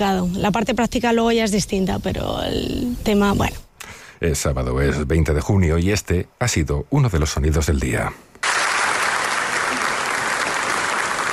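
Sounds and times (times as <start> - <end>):
speech: 0.0 - 3.6, 4.2 - 8.3
audience applause in Ponferrada: 8.4 - 11.3.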